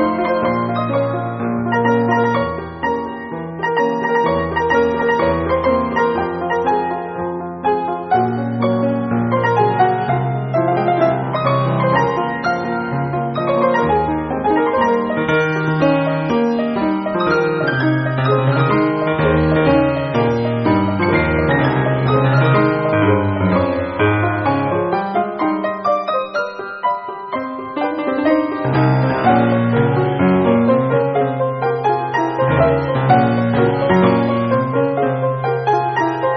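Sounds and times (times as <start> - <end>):
piano: 0.0 - 36.3.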